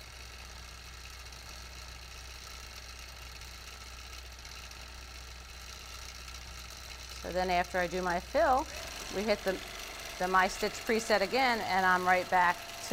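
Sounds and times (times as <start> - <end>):
quilting machine motor running at 35% on a My Stitch preset: 6.6 - 12.9
speech: 7.2 - 12.9.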